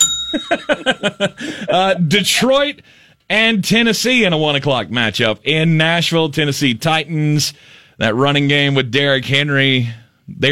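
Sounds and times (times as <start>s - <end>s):
bell ding: 0.0s - 1.4s
speech: 0.3s - 10.5s
laughter: 0.4s - 2.6s.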